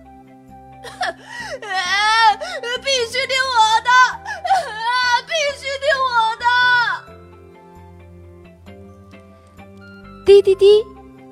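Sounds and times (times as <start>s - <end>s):
child wailing loudly: 0.9s - 7.0s
speech: 1.1s - 1.9s, 10.4s - 10.9s.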